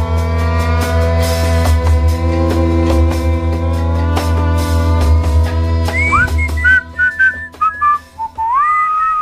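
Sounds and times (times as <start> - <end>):
sustained musical drone: 0.2 - 8.3
light soft whistling tune: 5.9 - 9.1.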